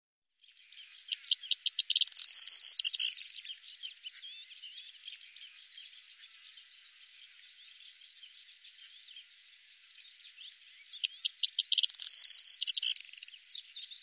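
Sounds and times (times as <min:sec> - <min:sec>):
Corn bunting singing: 0:00.3 - 0:14.0.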